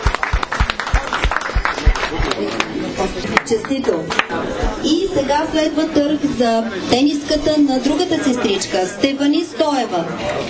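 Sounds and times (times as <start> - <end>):
audience applause after auction sale: 0.0 - 3.5
speech: 2.4 - 10.4.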